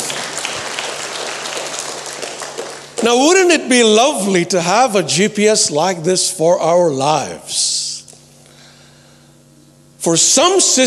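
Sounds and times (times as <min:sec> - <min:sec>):
crowd clapping: 0:00.0 - 0:03.5
speech: 0:03.0 - 0:07.8, 0:10.0 - 0:10.8.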